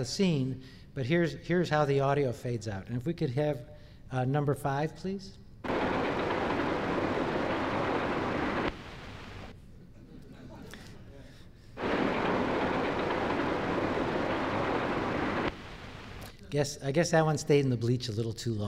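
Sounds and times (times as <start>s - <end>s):
speech: 0.0s - 5.4s, 16.5s - 18.6s
train background audio during the train scene: 5.7s - 9.5s, 11.8s - 16.2s.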